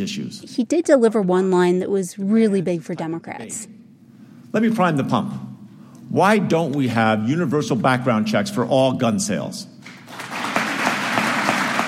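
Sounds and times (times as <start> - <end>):
speech: 0.0 - 3.8, 4.5 - 5.5, 6.1 - 10.4
applause and standing ovation: 9.8 - 11.8.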